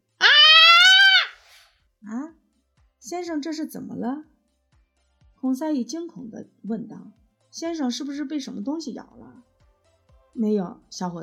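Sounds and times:
shrill human scream: 0.0 - 1.6
speech: 3.0 - 4.3, 5.4 - 9.5, 10.4 - 11.2.

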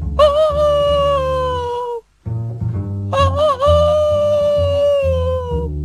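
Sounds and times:
rooster crowing: 0.2 - 2.0, 3.1 - 5.7.

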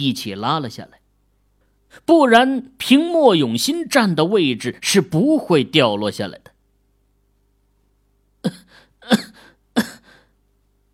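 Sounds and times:
speech: 0.0 - 1.0, 1.9 - 6.5, 8.4 - 9.9
person coughing: 8.4 - 10.3.

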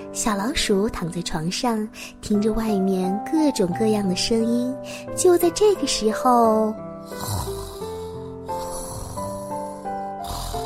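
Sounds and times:
speech: 0.2 - 7.6
snoring: 7.0 - 10.6.

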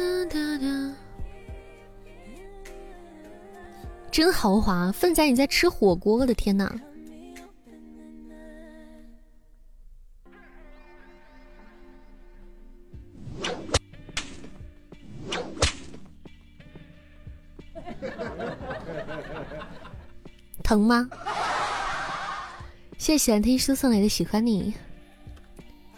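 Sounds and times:
speech: 4.2 - 6.9, 20.7 - 21.4, 23.0 - 24.8
whip crack: 13.3 - 16.1
laughter: 17.8 - 20.1, 21.1 - 22.6.

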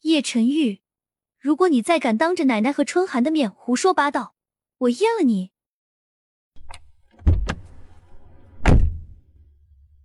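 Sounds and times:
speech: 0.2 - 0.8, 1.4 - 5.5
door knocks: 6.6 - 7.9, 8.5 - 9.2
car door slammed shut: 7.2 - 7.8, 8.5 - 9.2.

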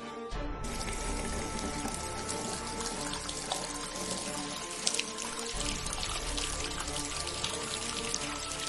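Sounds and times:
fire sprinklers spraying water: 0.6 - 8.6.

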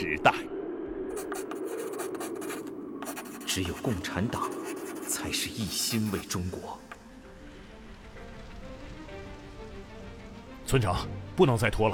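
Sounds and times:
brush writing on paper: 1.1 - 6.4
speech: 3.6 - 6.9, 10.7 - 11.9.

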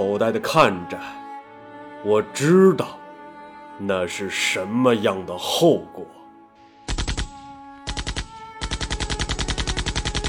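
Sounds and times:
speech: 0.2 - 1.2, 2.0 - 3.0, 3.8 - 6.2
Maxim machine gun firing at a bunker: 6.9 - 10.2.

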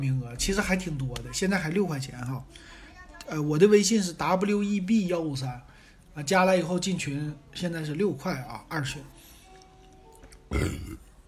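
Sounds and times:
speech: 0.0 - 9.2, 10.5 - 11.0
person hiccuping or burping: 10.5 - 11.0.

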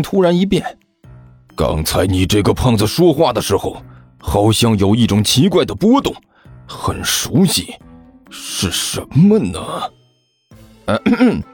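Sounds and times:
speech: 0.0 - 0.8, 1.6 - 10.0, 10.9 - 11.5
person coughing: 10.9 - 11.5.

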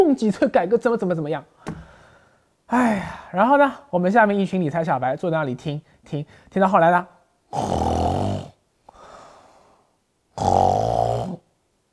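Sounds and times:
speech: 0.0 - 1.5, 2.7 - 7.9
person imitating pig snorts: 7.5 - 8.6, 10.4 - 11.5.

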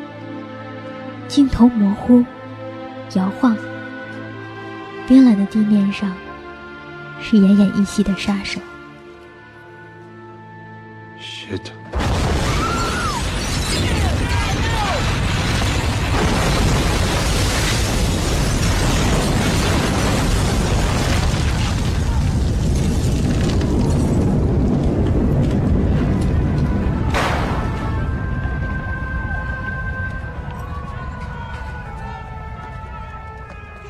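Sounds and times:
speech: 1.3 - 2.4, 3.1 - 3.7, 5.1 - 6.2, 7.2 - 8.7, 11.5 - 11.8
huge explosion: 11.9 - 30.3
crackling, clattering debris: 12.0 - 31.8.

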